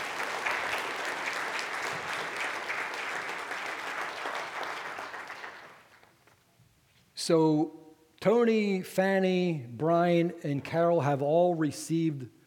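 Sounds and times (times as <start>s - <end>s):
audience applauding: 0.0s - 6.0s
speech: 7.2s - 12.4s.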